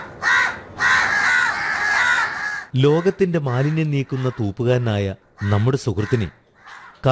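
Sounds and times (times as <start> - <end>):
crow cawing: 0.0 - 7.1
speech: 2.8 - 6.4.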